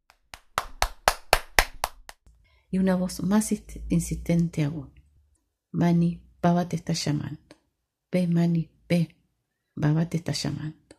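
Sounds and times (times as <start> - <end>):
insistent hand clapping: 0.1 - 2.2
speech: 2.7 - 5.0, 5.7 - 7.5, 8.1 - 9.2, 9.8 - 10.8.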